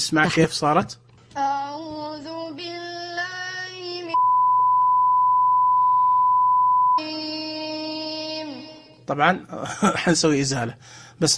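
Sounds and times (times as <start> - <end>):
speech: 0.0 - 1.5, 9.1 - 11.3
censor beep effect tone: 4.2 - 7.2
low hum: 4.2 - 7.4.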